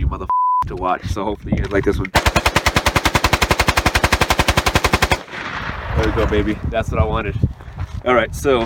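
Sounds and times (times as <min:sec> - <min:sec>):
speech: 0:00.8 - 0:02.4, 0:06.0 - 0:08.6
rifle fitted with a bump stock firing rapidly: 0:02.2 - 0:05.6.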